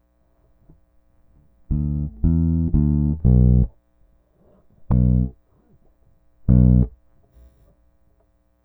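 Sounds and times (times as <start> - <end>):
bass: 0.6 - 3.8, 4.7 - 5.4, 6.4 - 7.5.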